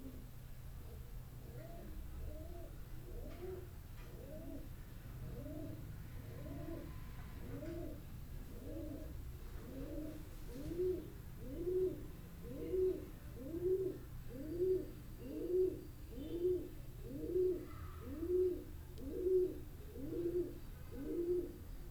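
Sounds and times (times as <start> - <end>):
pigeons in a wall in Boudha Kathmandu Nepal: 0.0 - 21.9.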